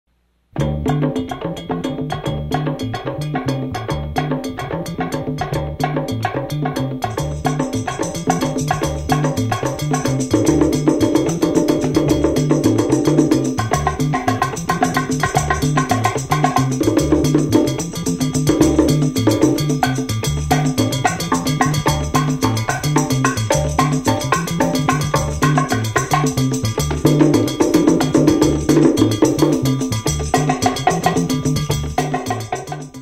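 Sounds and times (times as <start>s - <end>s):
percussion: 0.6s - 32.9s.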